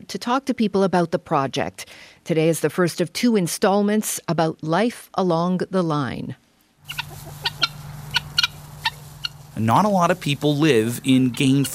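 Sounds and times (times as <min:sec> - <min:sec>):
speech: 0:00.1 - 0:07.3, 0:09.6 - 0:11.7
chickens clucking on a farm in Gainford, Alberta: 0:06.8 - 0:11.7
low steady hum: 0:07.0 - 0:11.7.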